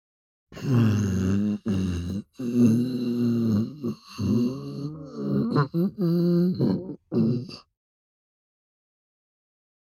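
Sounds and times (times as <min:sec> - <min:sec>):
hungry stomach growling: 0:00.6 - 0:07.7.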